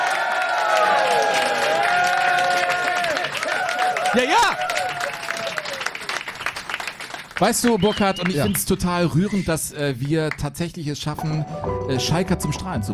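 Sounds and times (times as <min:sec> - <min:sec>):
live audience applauding and cheering: 0:00.0 - 0:09.3
speech: 0:04.2 - 0:04.7, 0:07.4 - 0:12.9.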